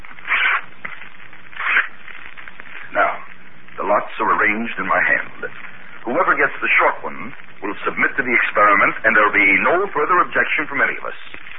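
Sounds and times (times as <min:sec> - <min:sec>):
strips of paper tearing: 0:00.2 - 0:00.7, 0:01.6 - 0:01.9
speech: 0:03.9 - 0:11.5.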